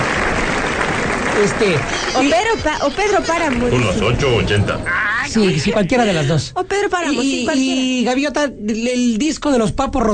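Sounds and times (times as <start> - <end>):
audience applause for a reader about to start: 0.0 - 4.4
speech: 1.4 - 10.1.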